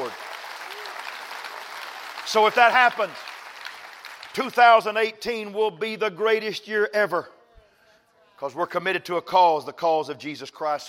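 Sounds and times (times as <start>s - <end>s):
audience clapping hands: 0.0s - 5.0s
speech: 2.3s - 3.3s, 4.4s - 7.4s, 8.4s - 10.8s.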